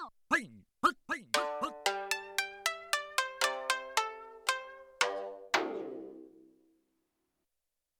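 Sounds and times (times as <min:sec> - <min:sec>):
shamisen duo on a Yamaha TX16W sampler: 0:01.4 - 0:06.6.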